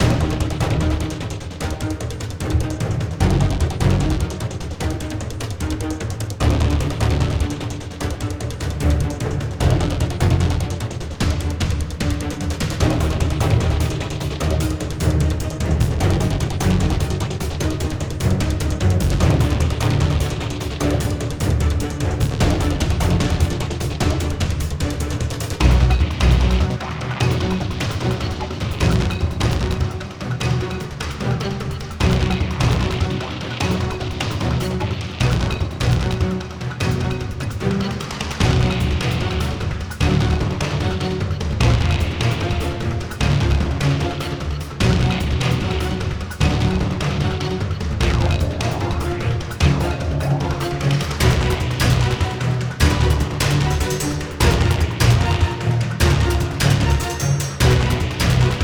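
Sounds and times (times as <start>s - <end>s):
low music loop: 0.0s - 58.6s.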